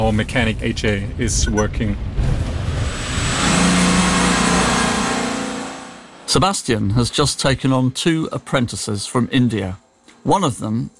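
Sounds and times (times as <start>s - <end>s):
road noise: 0.0s - 6.4s
speech: 0.1s - 2.1s, 6.3s - 10.9s
car engine humming driving through the village of Buchenbach: 0.1s - 6.4s.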